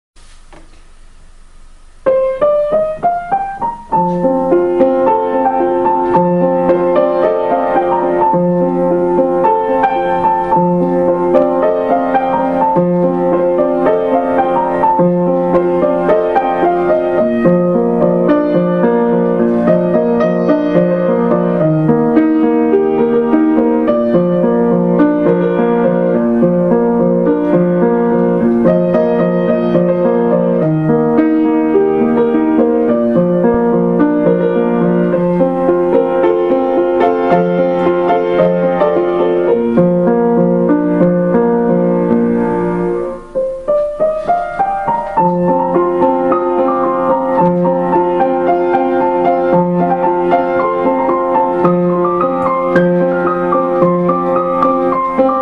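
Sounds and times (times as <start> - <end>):
piano cover: 0.2 - 55.4.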